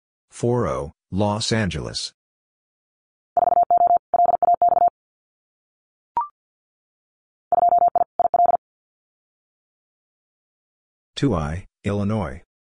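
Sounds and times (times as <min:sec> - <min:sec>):
speech: 0:00.4 - 0:02.2, 0:11.2 - 0:12.5
fast Morse code tones: 0:03.4 - 0:04.9, 0:07.5 - 0:08.6.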